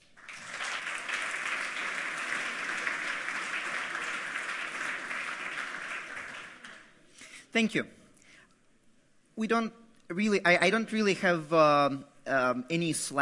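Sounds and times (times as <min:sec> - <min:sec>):
audience applause: 0:00.0 - 0:07.0
speech: 0:07.6 - 0:08.0, 0:09.4 - 0:13.2.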